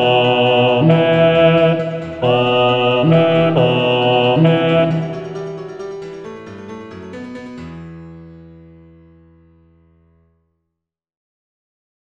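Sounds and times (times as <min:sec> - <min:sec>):
bass voice singing: 0:00.0 - 0:05.6.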